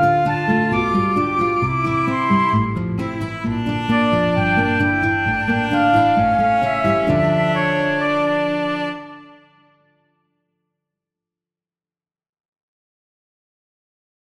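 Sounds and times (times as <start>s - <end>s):
romantic song: 0.0s - 9.9s.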